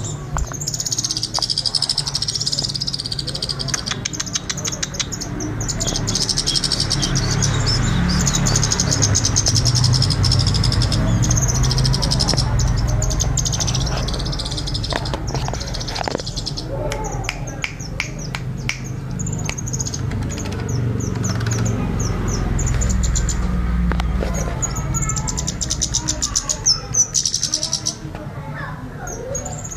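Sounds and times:
songbird chirping: 0:00.0 - 0:29.7.

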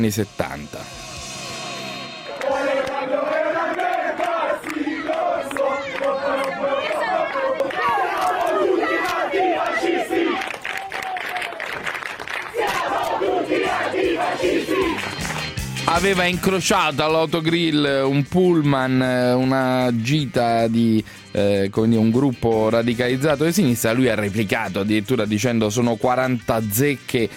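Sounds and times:
speech: 0:00.0 - 0:01.2, 0:15.9 - 0:27.3
crowd shouting protest at motorway service station: 0:02.3 - 0:11.6, 0:12.5 - 0:15.0.

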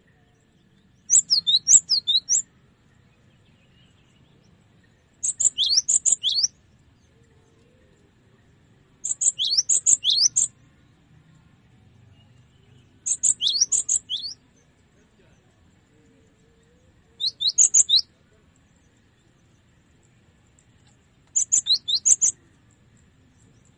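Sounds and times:
cinereous tit singing high sharp two-pitched chirps: 0:01.1 - 0:02.5, 0:05.2 - 0:06.6, 0:09.0 - 0:10.6, 0:13.0 - 0:14.4, 0:17.2 - 0:18.1, 0:21.4 - 0:22.4.

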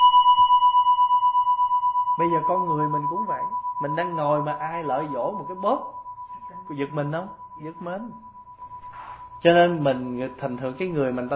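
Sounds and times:
metal temple bell struck firmly and ringing: 0:00.0 - 0:11.3
speech: 0:02.2 - 0:06.0, 0:06.7 - 0:08.3, 0:09.4 - 0:11.3.

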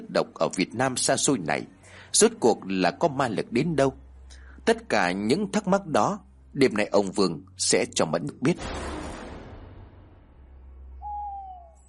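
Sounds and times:
speech: 0:00.1 - 0:04.0, 0:04.6 - 0:08.9
owl hooting at night: 0:11.0 - 0:11.8.

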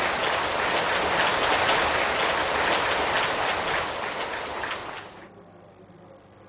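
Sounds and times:
long round of applause from a large crowd: 0:00.0 - 0:05.2.

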